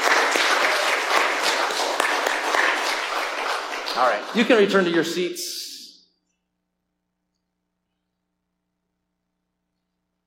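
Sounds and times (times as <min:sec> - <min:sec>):
round of applause: 0:00.0 - 0:05.3
speech: 0:04.0 - 0:05.6.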